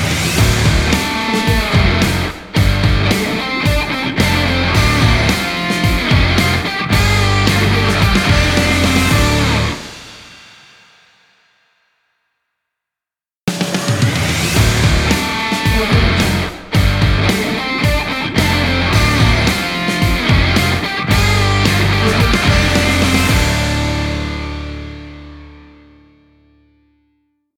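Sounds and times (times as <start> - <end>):
action sport rock music logo: 0.2 - 10.5, 14.4 - 26.0.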